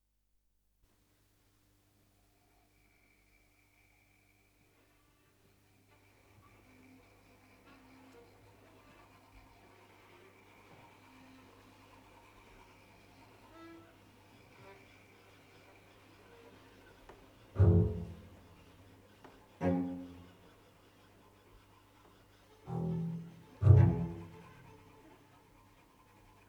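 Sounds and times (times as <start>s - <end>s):
orchestra playing: 17.6s - 18.4s, 22.7s - 24.8s.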